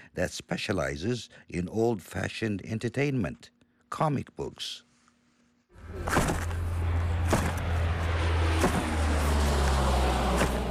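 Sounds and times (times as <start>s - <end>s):
speech: 0.1s - 4.9s, 5.9s - 6.5s
cargo plane flying over a warehouse: 5.8s - 10.6s.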